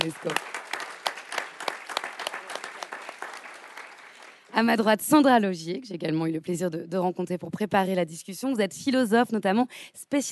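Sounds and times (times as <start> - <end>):
speech: 0.0 - 0.6, 4.6 - 10.3
audience applause: 0.0 - 4.6.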